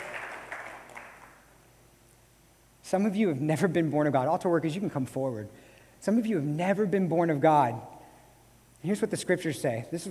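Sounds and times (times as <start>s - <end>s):
crowd clapping: 0.0s - 1.5s
speech: 2.9s - 7.9s, 8.8s - 10.0s.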